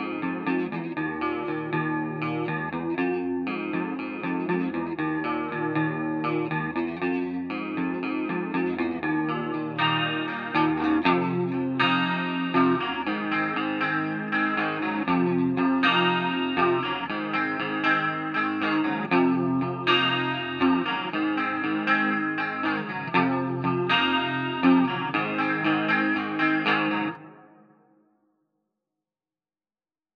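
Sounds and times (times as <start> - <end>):
half step clean electric guitar: 0.0 - 27.9.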